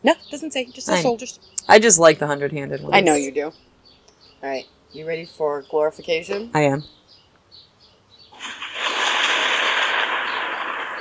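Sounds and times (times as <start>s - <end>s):
speech: 0.0s - 3.8s, 4.4s - 7.0s
thunder: 8.4s - 11.0s.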